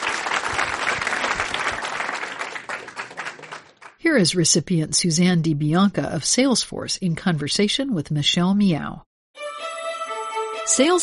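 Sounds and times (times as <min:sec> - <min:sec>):
audience applause: 0:00.0 - 0:04.0
speech: 0:04.1 - 0:09.1, 0:10.7 - 0:11.0.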